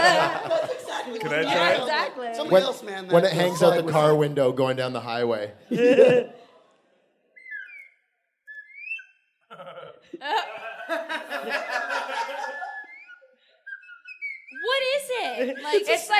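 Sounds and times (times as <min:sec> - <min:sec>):
laughter: 0:00.0 - 0:02.0, 0:05.7 - 0:06.6, 0:09.5 - 0:16.1
speech: 0:00.3 - 0:06.4, 0:14.7 - 0:16.1
slide whistle: 0:07.4 - 0:09.3, 0:12.4 - 0:15.0.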